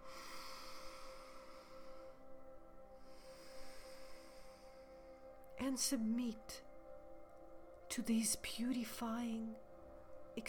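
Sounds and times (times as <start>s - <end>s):
deep breathing in and out: 0.0s - 5.6s
steady low tonal hum: 0.0s - 10.4s
speech: 5.6s - 6.7s, 7.9s - 9.7s.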